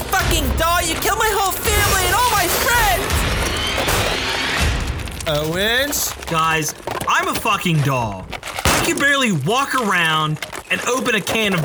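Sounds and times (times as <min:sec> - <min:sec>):
heavy low thumps: 0:00.0 - 0:06.9
car windshield smashing: 0:00.0 - 0:11.6
speech: 0:05.3 - 0:11.6.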